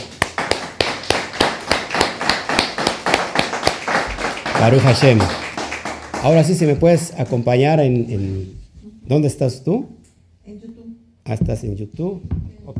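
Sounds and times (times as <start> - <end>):
applause: 0.0 - 7.5
speech: 4.6 - 5.4, 6.2 - 10.7, 11.3 - 12.7.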